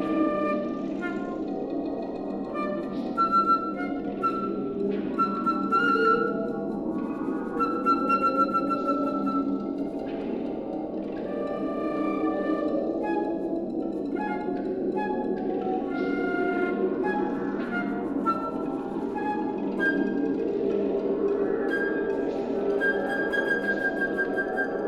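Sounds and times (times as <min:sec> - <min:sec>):
flute piece on magnetic tape: 0:00.0 - 0:10.4, 0:11.2 - 0:24.8.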